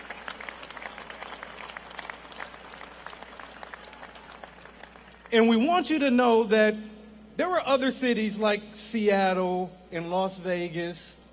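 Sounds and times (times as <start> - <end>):
audience applause: 0.0 - 5.3
speech: 5.3 - 11.2.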